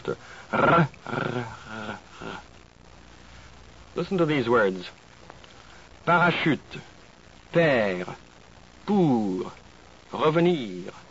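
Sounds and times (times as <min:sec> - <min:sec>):
speech: 0:00.0 - 0:01.6, 0:04.0 - 0:05.0, 0:06.1 - 0:06.9, 0:07.5 - 0:08.2, 0:08.9 - 0:11.0
person imitating dog growl: 0:00.5 - 0:02.4.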